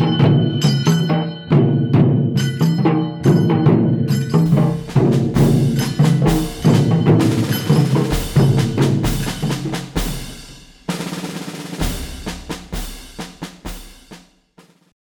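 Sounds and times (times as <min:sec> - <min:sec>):
religious percussion: 0:00.0 - 0:14.9.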